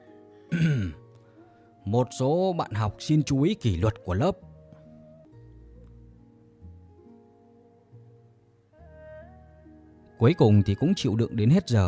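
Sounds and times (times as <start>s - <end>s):
teacher dry coughing: 0.5s - 1.0s
speech: 1.9s - 4.5s, 10.2s - 11.8s.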